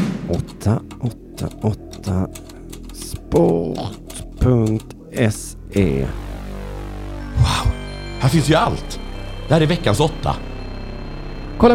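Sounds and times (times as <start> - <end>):
speech: 0.3 - 2.5, 3.3 - 6.3, 7.5 - 10.5
fingers typing on a polished keyboard: 0.3 - 5.4.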